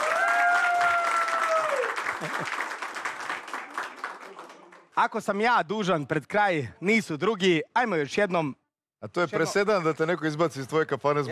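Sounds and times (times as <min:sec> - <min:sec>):
audience applause for an evening TV show: 0:00.0 - 0:05.1
speech: 0:02.2 - 0:02.6, 0:05.0 - 0:11.3.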